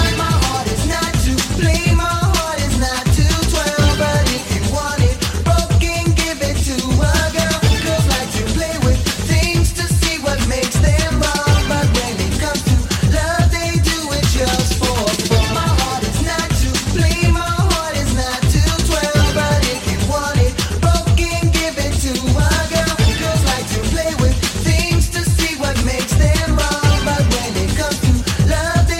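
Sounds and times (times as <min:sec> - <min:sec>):
Latin freestyle music: 0:00.0 - 0:28.9.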